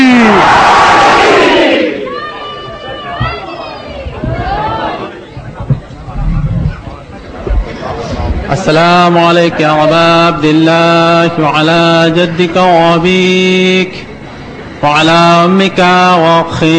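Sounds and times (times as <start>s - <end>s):
crowd at a devotional gathering shouting the Nara-e-Haidari chant in unison: 0.0s - 5.2s
murmuring voices: 1.6s - 10.5s
speech: 8.7s - 14.1s, 14.8s - 16.7s.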